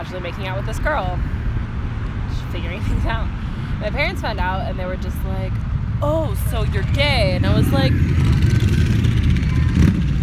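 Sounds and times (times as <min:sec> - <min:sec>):
speech: 0:00.0 - 0:01.5, 0:02.3 - 0:08.5
motorcycle engines revving past: 0:00.0 - 0:10.2.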